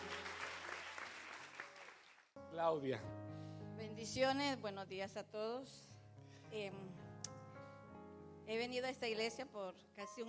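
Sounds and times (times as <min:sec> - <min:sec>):
audience applause: 0:00.0 - 0:02.3
speech: 0:02.5 - 0:05.9, 0:06.5 - 0:07.0, 0:08.5 - 0:10.2.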